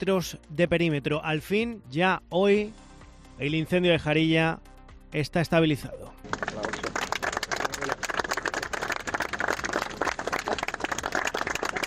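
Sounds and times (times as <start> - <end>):
speech: 0.0 - 2.8, 3.4 - 6.8
people applauding in a command post: 6.2 - 11.8.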